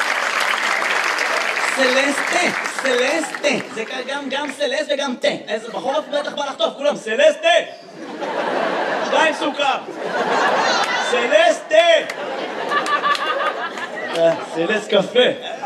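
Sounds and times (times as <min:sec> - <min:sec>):
audience applause: 0:00.0 - 0:04.7, 0:12.0 - 0:14.5
laughter: 0:01.0 - 0:04.6, 0:05.6 - 0:06.8, 0:07.8 - 0:15.6
speech: 0:01.8 - 0:12.4, 0:14.2 - 0:15.6.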